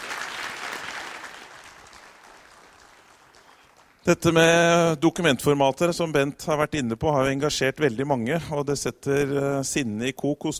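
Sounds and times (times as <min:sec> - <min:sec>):
audience applause: 0:00.0 - 0:04.0
speech: 0:04.0 - 0:10.5.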